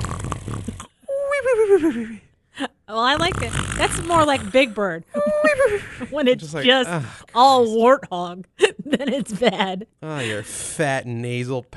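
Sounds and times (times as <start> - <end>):
voice imitating loud snoring: 0.0 - 0.9, 3.1 - 4.9
speech: 1.6 - 11.7
laughter: 5.1 - 6.6, 8.6 - 10.4.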